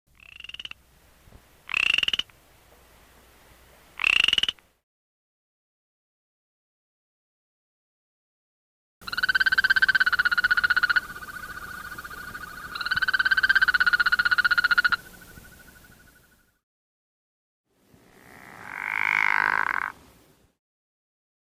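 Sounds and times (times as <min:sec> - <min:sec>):
frogs: 0:00.2 - 0:00.8, 0:01.7 - 0:02.3, 0:04.0 - 0:04.7, 0:09.0 - 0:16.6, 0:18.0 - 0:20.0.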